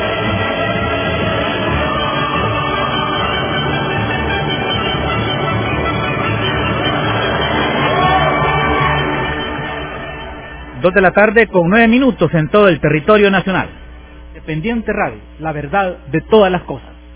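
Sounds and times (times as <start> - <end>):
crowd applause: 0.0 - 11.2
speech: 10.8 - 13.8, 14.4 - 16.9.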